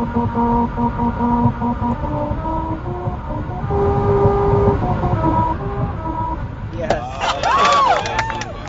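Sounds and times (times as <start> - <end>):
Honda Civic tires droning on a musical road: 0.0 - 8.6
people whooping and cheering: 6.9 - 8.6.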